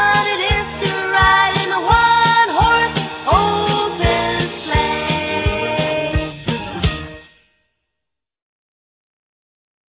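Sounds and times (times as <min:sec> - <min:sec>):
MIDI Christmas song: 0:00.0 - 0:07.5.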